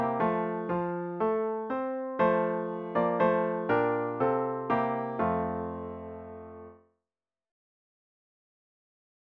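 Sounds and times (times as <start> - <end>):
piano piece with intro: 0.0 - 6.8.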